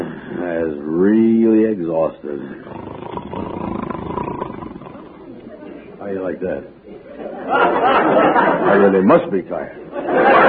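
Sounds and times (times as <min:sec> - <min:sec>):
speech: 0:00.7 - 0:03.6, 0:06.0 - 0:10.4
person snoring: 0:02.3 - 0:05.3
laughter: 0:07.1 - 0:10.4.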